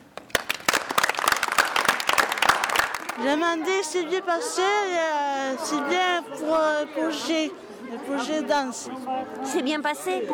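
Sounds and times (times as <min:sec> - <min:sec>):
audience applause: 0:00.2 - 0:03.5
speech: 0:03.2 - 0:10.3.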